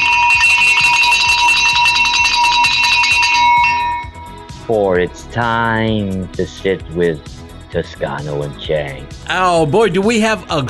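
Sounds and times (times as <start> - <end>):
bell ringing: 0.0 - 4.7
speech: 4.7 - 10.6.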